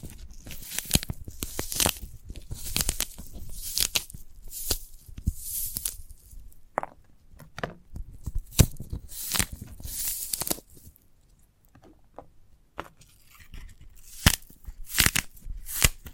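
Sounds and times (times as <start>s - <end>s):
sprouted coconut ripping and scraping: 0.0s - 6.5s, 8.1s - 11.0s, 13.0s - 16.1s.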